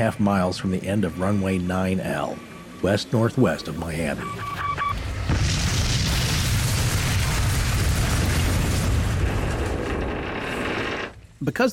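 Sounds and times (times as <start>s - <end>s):
speech: 0.0s - 4.8s, 11.4s - 11.7s
airliner crashing into the ground: 5.0s - 11.2s.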